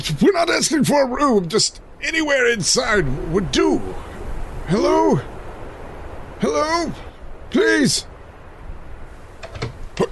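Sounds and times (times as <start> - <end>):
speech: 0.0 - 4.1, 4.7 - 5.3, 6.4 - 8.1
door opening: 9.4 - 10.1.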